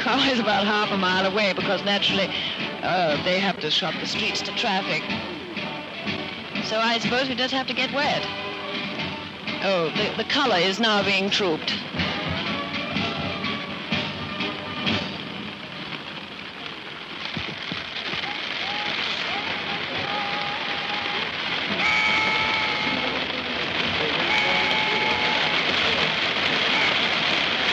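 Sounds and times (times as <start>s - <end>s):
heavy rain pelting down: 0.0s - 27.7s
speech: 0.2s - 5.3s, 6.7s - 8.4s, 9.6s - 12.1s.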